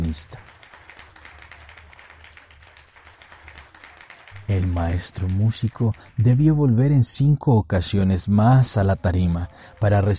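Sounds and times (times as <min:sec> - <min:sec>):
audience applause in an auditorium: 0:00.0 - 0:06.5, 0:09.1 - 0:10.1
speech: 0:00.1 - 0:00.4, 0:04.5 - 0:10.1.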